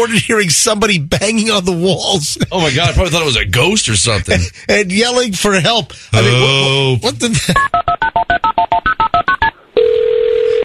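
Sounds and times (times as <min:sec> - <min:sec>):
speech: 0:00.0 - 0:07.8
single steady telephone tone: 0:07.6 - 0:10.6.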